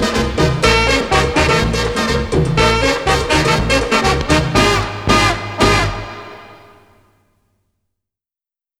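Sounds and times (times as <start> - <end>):
mambo music: 0.0 - 6.9.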